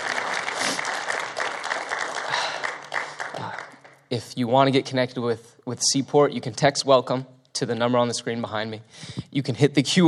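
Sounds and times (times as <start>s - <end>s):
audience clapping hands: 0.0s - 4.1s
speech: 4.1s - 10.0s.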